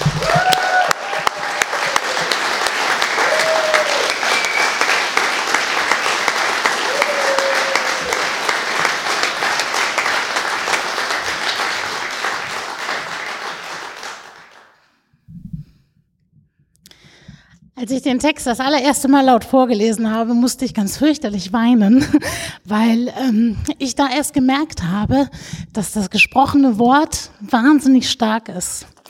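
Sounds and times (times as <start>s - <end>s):
large audience applause: 0.0s - 14.8s
speech: 17.9s - 29.0s.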